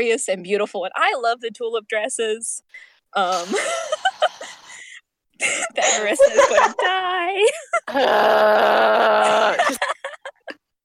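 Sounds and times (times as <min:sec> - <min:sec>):
speech: 0:00.0 - 0:04.4, 0:05.4 - 0:09.9
person imitating a whale: 0:07.9 - 0:09.7.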